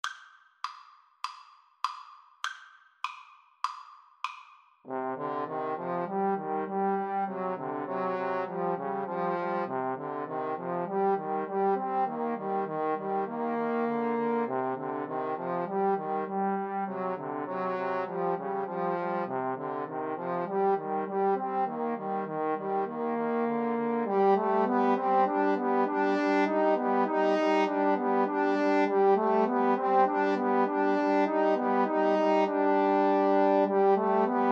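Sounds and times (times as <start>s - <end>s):
trombone trio: 4.9s - 34.4s.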